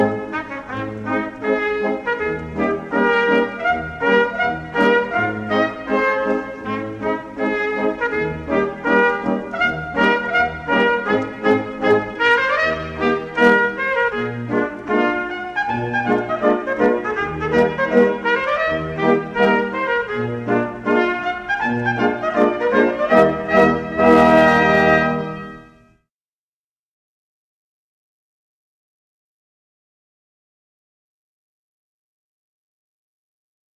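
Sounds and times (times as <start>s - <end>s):
Schottische quadrille dance music: 0.0s - 25.5s.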